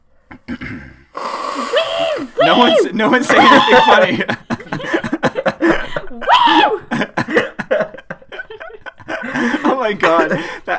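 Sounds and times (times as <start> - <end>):
speech: 0.5 - 4.5
nose blowing: 0.8 - 2.7
laughter: 1.9 - 10.7.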